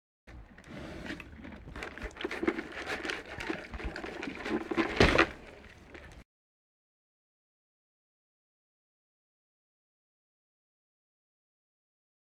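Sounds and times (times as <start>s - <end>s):
farm animal snorts: 0.4s - 6.1s.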